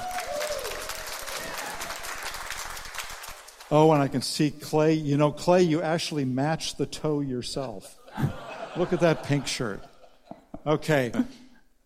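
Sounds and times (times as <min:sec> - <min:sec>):
audience applause: 0:00.0 - 0:03.9
speech: 0:03.7 - 0:09.9, 0:10.6 - 0:11.4
laughter: 0:07.6 - 0:10.7.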